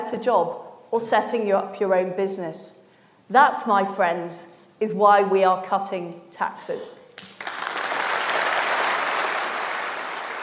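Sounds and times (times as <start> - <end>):
speech: 0.0 - 7.0
audience applause after speech: 7.2 - 10.4.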